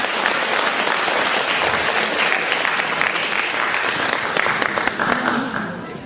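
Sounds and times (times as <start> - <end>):
large audience warm applause: 0.0 - 5.9.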